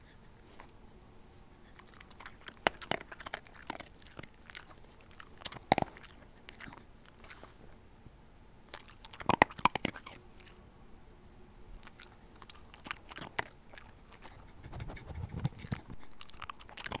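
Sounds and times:
dog crunching food: 1.7 - 7.6, 8.7 - 10.6, 11.7 - 16.9.

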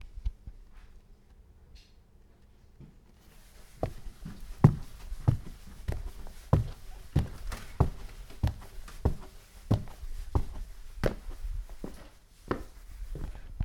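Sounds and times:
footsteps on carpeted steps: 3.2 - 13.6.

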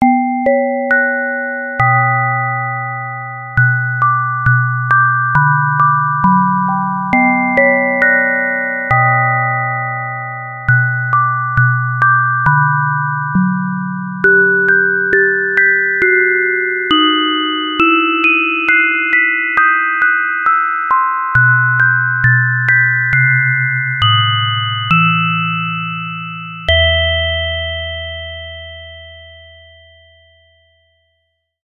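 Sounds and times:
music box: 0.0 - 30.9.

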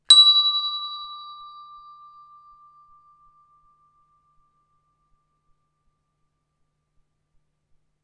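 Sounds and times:
single hand bell on D ringing: 0.1 - 2.7.

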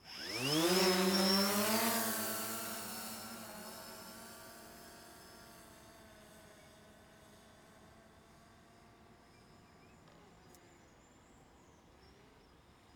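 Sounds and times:
drone taking off: 0.1 - 4.6.

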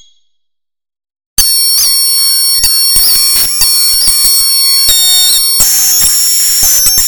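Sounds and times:
electronic alien signals: 1.4 - 7.0.

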